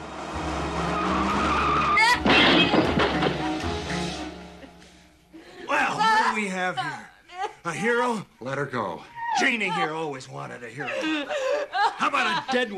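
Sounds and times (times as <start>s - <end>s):
car engine rumbling: 0.0s - 3.7s
tires screeching in a skid: 0.0s - 4.3s
laughter: 4.6s - 6.6s, 10.7s - 12.7s
speech: 6.7s - 12.7s.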